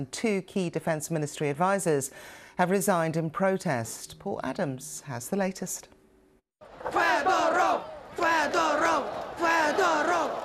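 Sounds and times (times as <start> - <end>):
speech: 0.0 - 6.0
large crowd chanting in unison in a square: 6.6 - 10.4.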